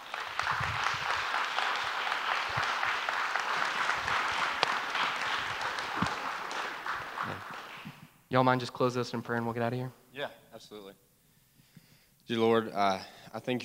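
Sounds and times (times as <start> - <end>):
audience clapping: 0.0 - 8.2
speech: 8.3 - 11.1, 12.3 - 13.6.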